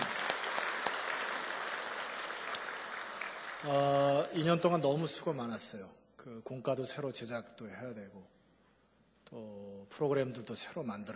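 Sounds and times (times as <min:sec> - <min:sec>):
audience applause: 0:00.0 - 0:04.6
speech: 0:03.6 - 0:08.4, 0:09.3 - 0:11.1.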